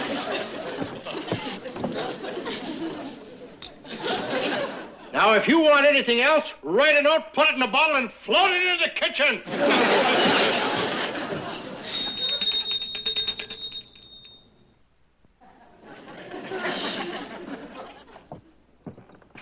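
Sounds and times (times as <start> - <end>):
laughter: 0.0 - 5.4, 9.4 - 12.4, 15.4 - 18.5
speech: 5.2 - 10.4
voice imitating a ringing bell: 11.8 - 14.4.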